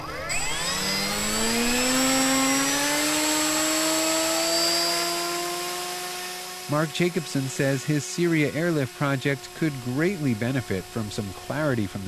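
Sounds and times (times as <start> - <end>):
drone propellers spinning up with a buzzing whine: 0.0 - 12.0
speech: 6.7 - 12.0.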